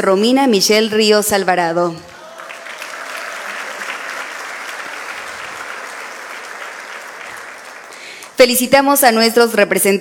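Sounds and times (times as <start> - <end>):
speech: 0.0 - 2.1, 8.4 - 9.9
audience applause: 2.1 - 8.4.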